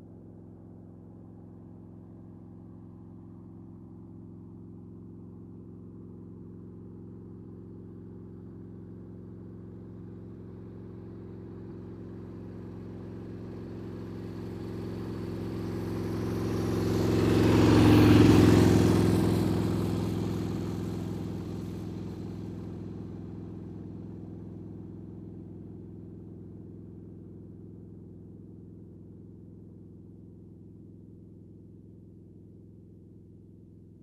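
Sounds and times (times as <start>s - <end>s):
motorcycle passing by: 12.2s - 25.8s.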